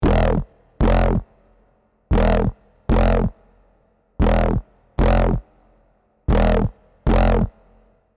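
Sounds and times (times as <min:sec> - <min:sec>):
bass: 0:00.0 - 0:07.9.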